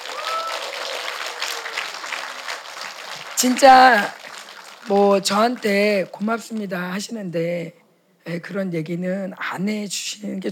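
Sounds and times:
crowd applause: 0.0 - 6.2
speech: 3.4 - 4.2, 4.8 - 10.4.

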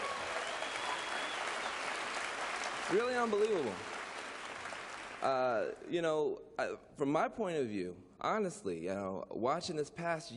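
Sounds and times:
audience applause: 0.0 - 5.5
speech: 2.9 - 3.9, 5.2 - 10.3.

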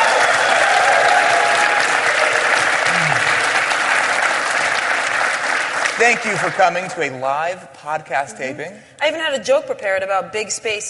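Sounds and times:
conference audience cheering and applauding at the MIT and Sloan Sports Analytics Conference: 0.0 - 7.0
speech: 6.0 - 10.8.

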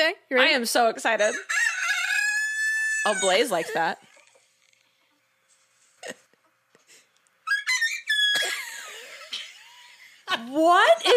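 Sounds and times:
speech: 0.0 - 1.6, 3.0 - 4.1, 6.0 - 6.2, 10.3 - 11.1
rooster crowing: 1.2 - 3.8.

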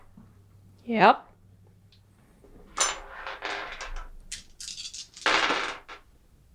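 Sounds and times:
speech: 0.9 - 1.3
dice rolling: 3.1 - 6.0.

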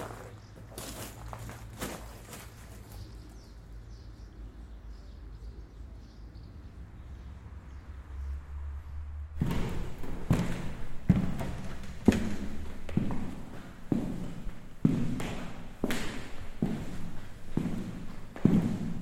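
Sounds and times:
footsteps crunching among the ruins of Vukovar, Croatia: 0.0 - 3.4, 9.4 - 19.0.

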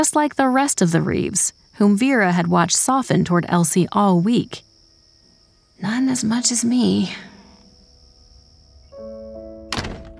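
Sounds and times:
speech: 0.0 - 4.7, 5.8 - 7.3
door being shut: 9.6 - 10.1.

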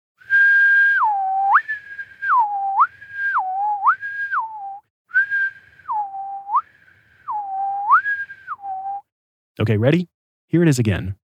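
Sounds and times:
person whistling: 0.2 - 9.1
speech: 9.6 - 11.2.

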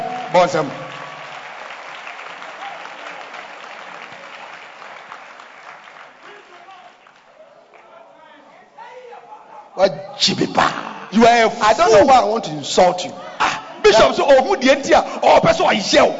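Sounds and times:
audience clapping hands: 0.0 - 8.1
speech: 0.3 - 0.8, 9.8 - 13.3, 13.9 - 16.1.

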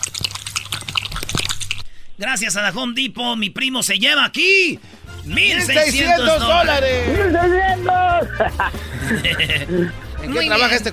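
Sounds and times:
dog drinking water: 0.0 - 1.9
speech: 2.2 - 10.9
laughter: 6.0 - 10.6.

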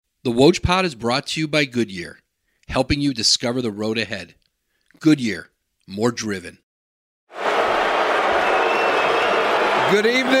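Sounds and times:
speech: 0.2 - 4.4, 5.0 - 6.6, 9.9 - 10.3
crowd at the 2013 NBA Draft at the Barclays Center in Brooklyn cheering and applauding: 7.3 - 10.3.

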